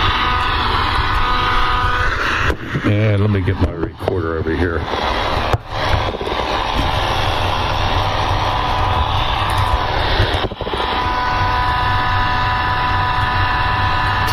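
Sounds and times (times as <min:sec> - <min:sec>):
faint high whine: 0:00.0 - 0:14.3
radio interference buzz from keyboard: 0:00.0 - 0:14.3
speech: 0:02.8 - 0:05.4.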